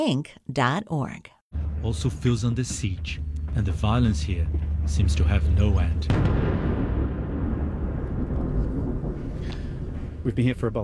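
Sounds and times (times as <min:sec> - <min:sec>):
speech: 0:00.0 - 0:06.6, 0:10.2 - 0:10.8
Israeli airstrike explosion: 0:01.5 - 0:10.8.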